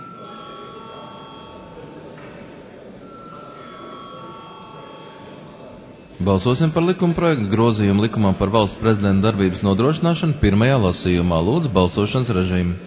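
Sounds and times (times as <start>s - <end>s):
parliamentary session bell ringing: 0.0s - 2.1s, 3.0s - 8.4s
speech: 6.2s - 12.8s.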